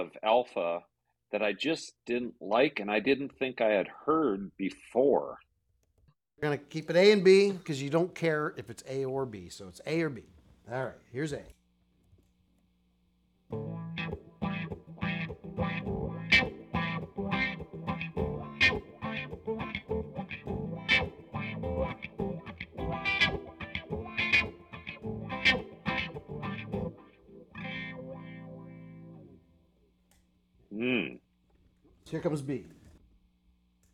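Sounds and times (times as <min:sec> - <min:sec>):
speech: 0:00.0 - 0:05.5, 0:06.4 - 0:11.6, 0:32.1 - 0:32.8
electric guitar riff played through a wah pedal: 0:13.5 - 0:29.4.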